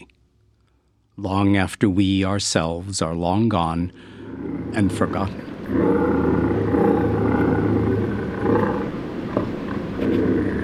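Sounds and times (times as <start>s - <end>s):
speech: 1.2s - 4.1s, 4.7s - 6.5s
bobcat growling and yowling: 4.0s - 10.6s.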